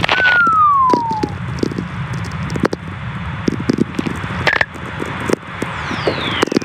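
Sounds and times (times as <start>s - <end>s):
whistler radio tones from lightning: 0.0s - 1.4s, 5.7s - 6.6s
constant radio hiss with sharp crackling clicks: 0.0s - 6.6s.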